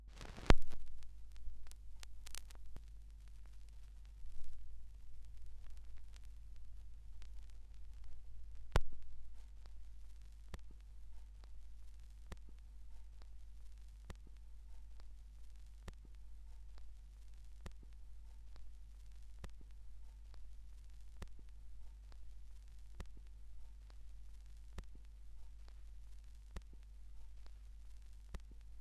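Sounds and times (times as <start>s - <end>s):
vinyl record noise: 0.1s - 28.7s.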